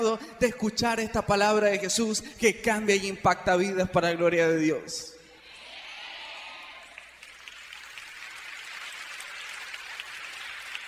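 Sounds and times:
speech: 0:00.0 - 0:05.1
audience clapping: 0:05.5 - 0:10.8.

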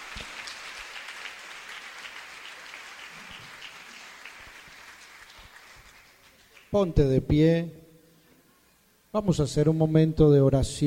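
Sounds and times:
audience applause: 0:00.0 - 0:06.7
speech: 0:06.7 - 0:07.8, 0:09.2 - 0:10.8.

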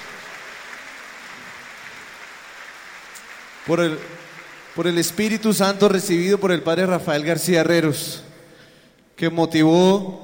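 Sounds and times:
crowd clapping: 0:00.0 - 0:06.2
speech: 0:03.6 - 0:04.2, 0:04.8 - 0:08.3, 0:09.2 - 0:10.2.

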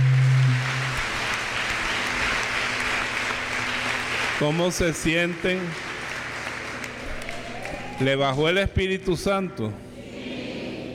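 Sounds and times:
audience applause: 0:00.0 - 0:08.5
speech: 0:04.4 - 0:05.9, 0:08.0 - 0:09.8.

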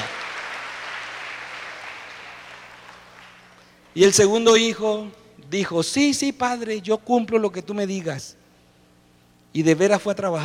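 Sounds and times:
crowd applause: 0:00.0 - 0:03.7
speech: 0:04.0 - 0:08.4, 0:09.5 - 0:10.4.

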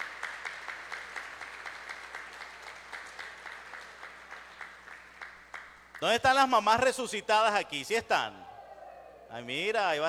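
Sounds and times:
audience applause: 0:00.0 - 0:05.7
speech: 0:06.0 - 0:08.4, 0:09.3 - 0:10.0.

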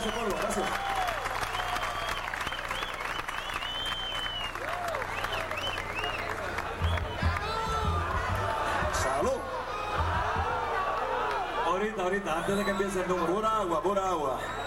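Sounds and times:
cheers and whoops: 0:00.0 - 0:11.7
audience applause: 0:00.0 - 0:11.8
speech: 0:12.0 - 0:14.6.

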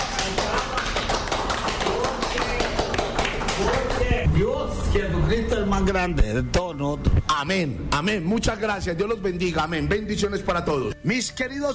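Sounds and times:
audience applauding: 0:00.0 - 0:04.2
speech: 0:04.9 - 0:11.7.

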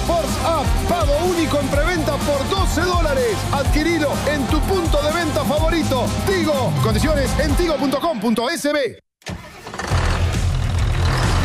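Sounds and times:
speech: 0:00.1 - 0:09.0
heavy tractor engine cranking and idling: 0:09.2 - 0:11.4.

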